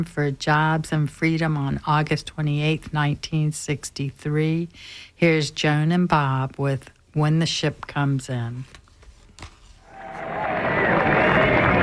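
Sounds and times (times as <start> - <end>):
speech: 0.0 - 8.8
audience applause: 9.9 - 11.8.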